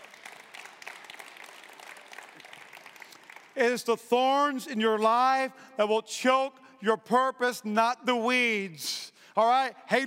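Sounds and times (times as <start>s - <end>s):
audience clapping: 0.0s - 4.0s
speech: 3.6s - 10.0s.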